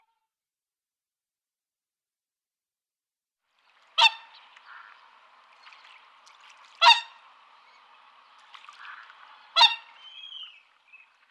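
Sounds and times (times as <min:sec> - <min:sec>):
whooper swans calling in bugling chorus: 0:03.6 - 0:11.3.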